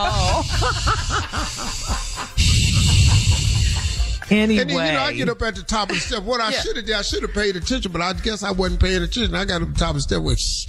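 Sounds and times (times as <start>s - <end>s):
voice imitating wheezy heavy breathing: 0.0s - 4.3s
laughter: 0.0s - 8.6s
speech: 0.6s - 1.3s, 4.3s - 10.6s.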